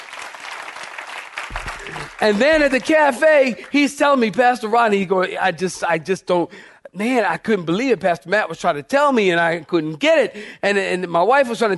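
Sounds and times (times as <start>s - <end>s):
audience clapping hands: 0.0s - 4.3s
speech: 1.5s - 11.7s.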